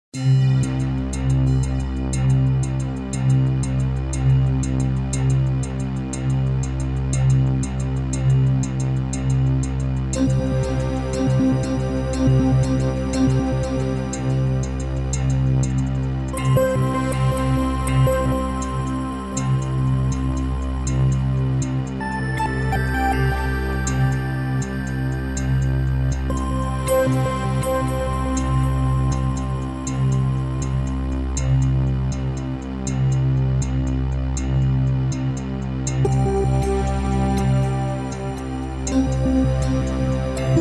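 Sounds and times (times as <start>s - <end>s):
instrumental background music for an excursion: 0.2s - 40.5s.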